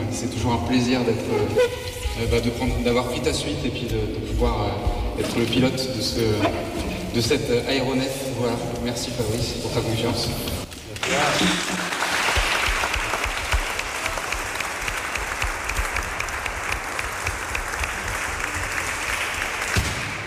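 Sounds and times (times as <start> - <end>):
speech: 0.2 - 11.8
audience applause: 11.0 - 20.2.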